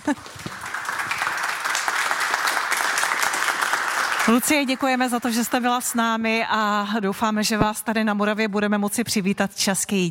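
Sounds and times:
applause: 0.0 - 6.4
speech: 0.1 - 0.4, 4.2 - 10.0.

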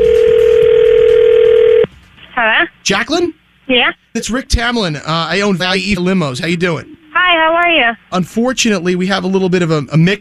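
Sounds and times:
telephone line tone: 0.0 - 1.9
speech: 2.9 - 10.1.

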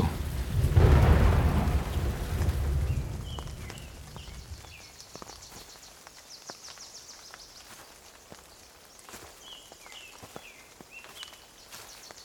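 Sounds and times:
heavy roll of thunder over a valley: 0.0 - 4.7
steady rain hissing in a valley: 0.0 - 12.2.

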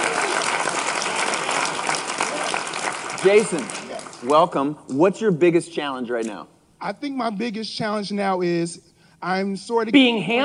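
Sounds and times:
audience applause at a live on-stage interview at a photography event: 0.0 - 4.5
speech: 3.2 - 10.4.

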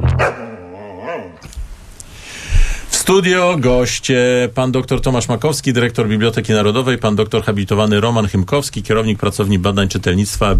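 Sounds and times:
shepherd dog barking and whining: 0.0 - 1.5
speech: 3.1 - 10.5.

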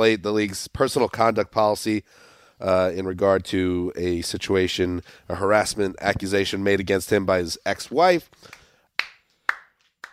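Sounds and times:
speech: 0.0 - 8.6
hand clapping: 8.4 - 10.1.

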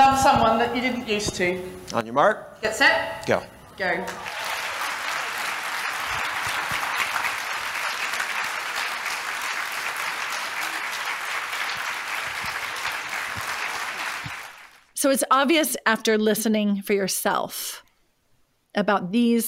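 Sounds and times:
speech: 0.2 - 4.4, 15.0 - 17.8, 18.8 - 19.4
audience applause in a standing ovation: 4.1 - 14.9.

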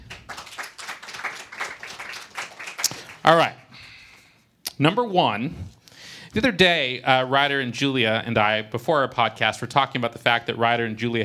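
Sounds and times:
scattered audience applause: 0.0 - 3.6
speech: 3.2 - 3.6, 4.8 - 11.2.

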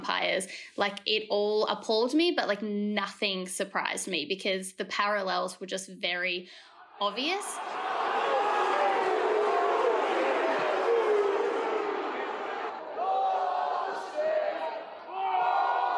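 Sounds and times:
speech: 0.2 - 8.2
football crowd chanting abuse at an umpire: 6.7 - 15.9.

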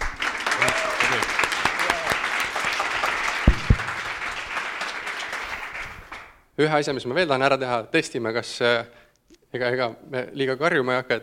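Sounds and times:
audience applause: 0.0 - 6.3
speech: 6.6 - 11.2.

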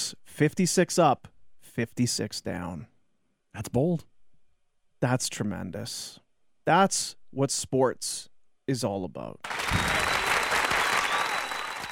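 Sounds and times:
speech: 0.4 - 2.9, 3.6 - 4.1, 5.0 - 10.1
applause: 9.4 - 11.9.

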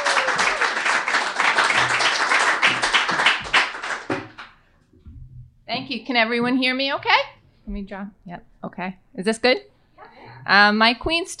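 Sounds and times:
audience applause: 0.0 - 4.5
speech: 5.9 - 9.7, 10.4 - 11.3.

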